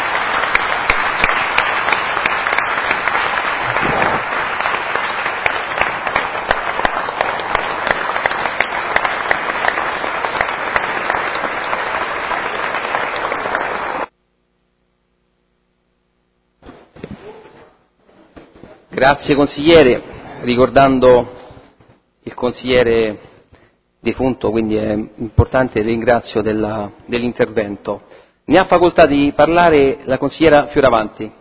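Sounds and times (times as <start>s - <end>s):
crowd applauding: 0.0s - 14.1s
speech: 19.0s - 21.4s, 22.4s - 23.3s, 24.0s - 31.4s.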